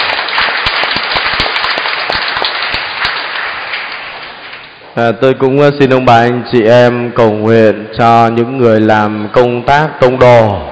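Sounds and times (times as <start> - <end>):
audience applauding: 0.0 - 4.7
speech: 5.0 - 10.6.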